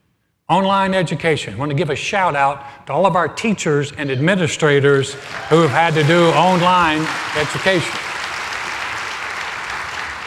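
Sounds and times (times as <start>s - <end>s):
speech: 0.5s - 8.1s
audience clapping: 5.1s - 10.2s.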